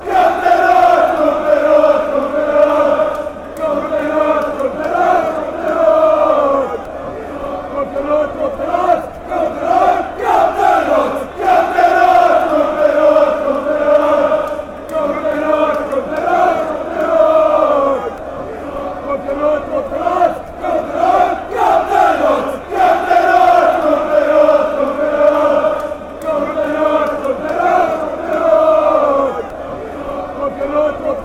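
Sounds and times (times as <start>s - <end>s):
crowd chant: 0.0s - 31.2s.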